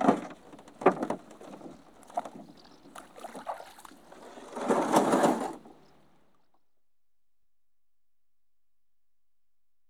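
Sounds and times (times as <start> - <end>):
one man rowing a rowing boat: 0.0 - 6.2.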